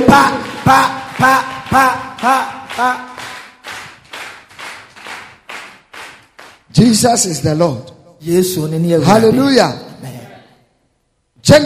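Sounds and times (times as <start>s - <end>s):
group clapping in rhythm: 0.0s - 7.3s
speech: 0.1s - 3.2s, 6.8s - 10.2s, 11.4s - 11.6s.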